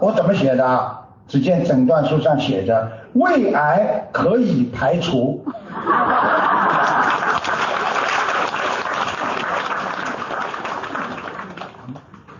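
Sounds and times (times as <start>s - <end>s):
speech: 0.0s - 6.9s
laughter: 5.4s - 7.5s
audience clapping: 6.6s - 12.3s.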